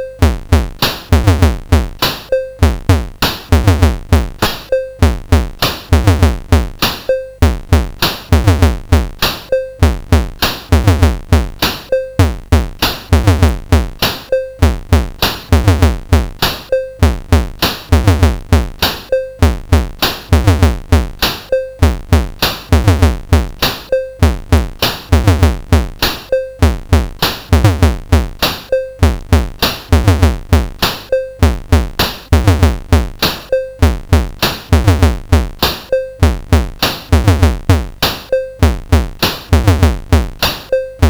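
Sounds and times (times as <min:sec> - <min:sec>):
drums: 0:00.0 - 0:41.0.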